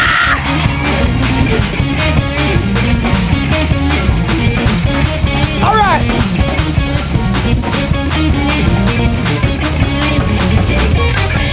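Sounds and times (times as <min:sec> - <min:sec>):
crowd screaming and yelling: 0:00.0 - 0:01.1
steady rhythmic thumping: 0:00.4 - 0:11.5.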